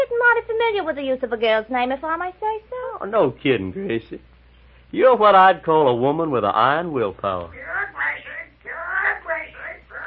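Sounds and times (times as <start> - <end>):
speech: 0.6 - 4.3, 4.9 - 7.7
parrot squawking: 7.6 - 10.0.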